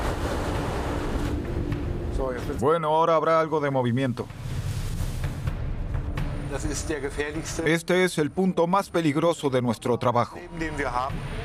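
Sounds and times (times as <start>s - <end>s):
stormy waves at sea: 0.0s - 2.4s, 3.5s - 5.6s
stormy wind at sea: 0.0s - 2.6s
speech: 2.2s - 4.4s, 6.5s - 11.4s.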